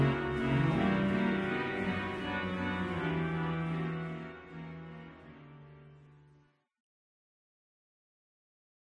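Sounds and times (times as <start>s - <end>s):
organ: 0.0s - 6.4s.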